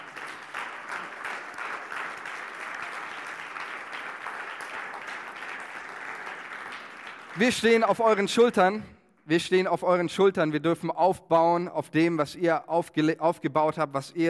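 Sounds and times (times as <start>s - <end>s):
audience applause: 0.0s - 7.9s
speech: 7.4s - 14.2s.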